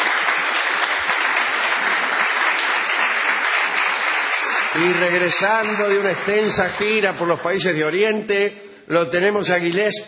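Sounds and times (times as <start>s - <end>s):
audience ovation and applause: 0.0s - 7.4s
speech: 4.8s - 10.0s.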